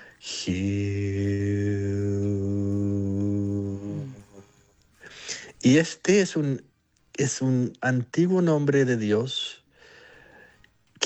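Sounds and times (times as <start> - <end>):
speech: 0.2 - 1.0, 5.7 - 9.6
single voice chanting: 0.2 - 4.6.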